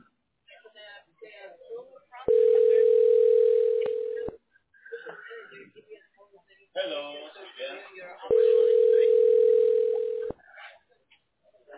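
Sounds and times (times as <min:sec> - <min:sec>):
telephone ringing tone: 0:02.3 - 0:04.4, 0:08.3 - 0:10.3.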